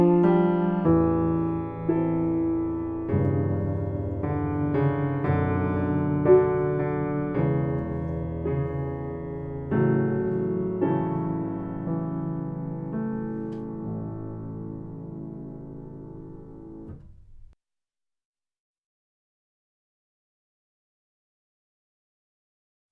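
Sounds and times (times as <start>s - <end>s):
solo piano: 0.0s - 17.6s.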